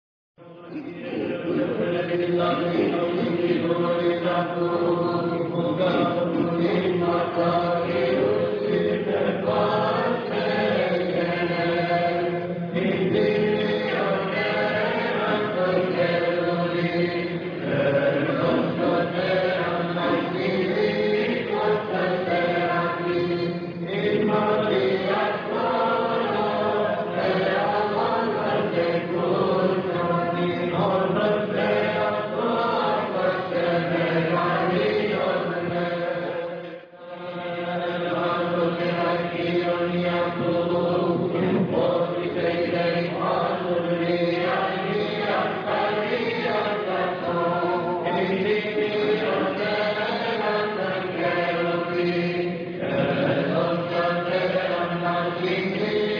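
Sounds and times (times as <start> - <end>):
choir singing: 0.4 - 56.1.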